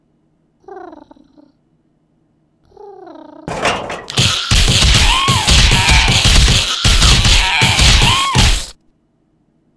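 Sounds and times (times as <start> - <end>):
crowbar: 3.5 - 8.8.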